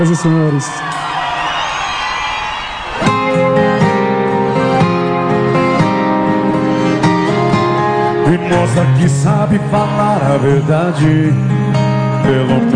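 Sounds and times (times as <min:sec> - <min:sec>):
speech: 0:00.0 - 0:01.0, 0:08.3 - 0:12.7
audience applause and cheering: 0:00.0 - 0:08.2.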